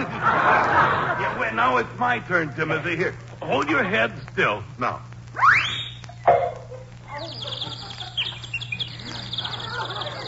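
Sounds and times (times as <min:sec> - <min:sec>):
laughter: 0:00.0 - 0:02.0, 0:07.5 - 0:10.2
speech: 0:01.7 - 0:05.1
little bird singing: 0:07.1 - 0:10.2.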